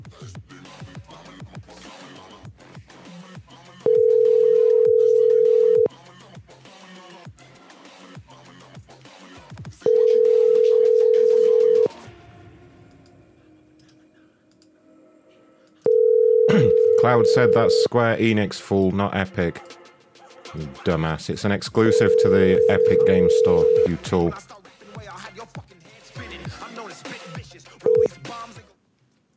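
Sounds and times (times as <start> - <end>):
telephone line tone from a phone: 3.9 - 5.9, 9.9 - 11.9, 15.9 - 17.9, 21.8 - 24.0, 27.9 - 28.1
speech: 17.1 - 19.7, 20.6 - 24.5.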